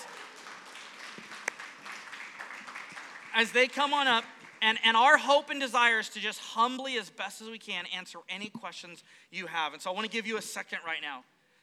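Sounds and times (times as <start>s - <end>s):
single sharp loud clap: 0.0s - 3.2s
audience applause: 0.0s - 4.8s
speech: 3.4s - 11.3s.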